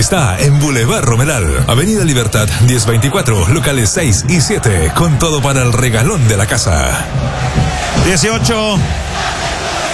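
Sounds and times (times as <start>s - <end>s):
speech: 0.0s - 9.5s
football stadium crowd roaring and chanting: 0.0s - 9.9s
loud voices shouting: 1.7s - 9.9s.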